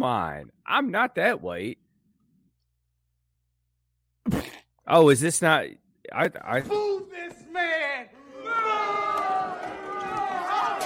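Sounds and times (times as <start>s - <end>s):
speech: 0.0s - 1.8s, 4.2s - 8.7s
crowd booing: 8.2s - 10.8s.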